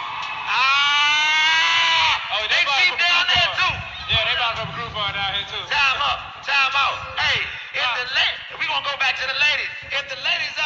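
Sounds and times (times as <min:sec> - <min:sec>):
audience cheering and screaming: 0:00.0 - 0:05.8
speech: 0:06.7 - 0:10.6.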